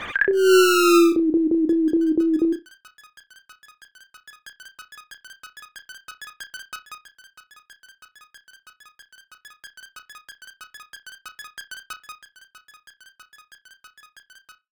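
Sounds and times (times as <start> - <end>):
game over jingle: 0.3 - 2.6.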